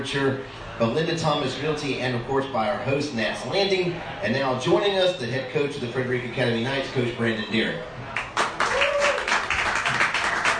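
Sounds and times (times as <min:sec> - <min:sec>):
speech: 0:00.0 - 0:08.0
people clapping to greet the Frederick Academy Knights head coach: 0:08.1 - 0:10.5.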